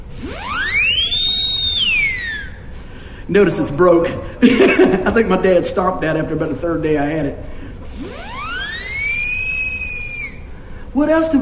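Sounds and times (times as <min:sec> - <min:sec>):
toy whistle ring being blown: 0:00.2 - 0:02.7, 0:07.9 - 0:10.5
speech: 0:03.3 - 0:07.6, 0:11.0 - 0:11.4.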